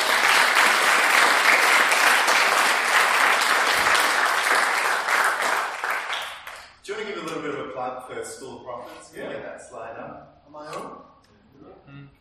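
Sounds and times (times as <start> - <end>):
audience clapping welcoming a guest minister and team: 0.0 - 6.8
speech: 7.9 - 12.2.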